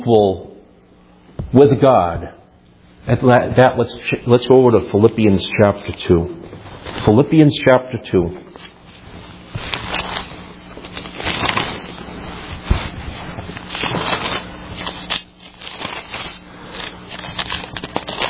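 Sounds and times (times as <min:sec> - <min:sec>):
speech: 0:00.0 - 0:00.5, 0:01.5 - 0:02.4, 0:03.0 - 0:08.7
Bible pages being turned: 0:08.6 - 0:18.2.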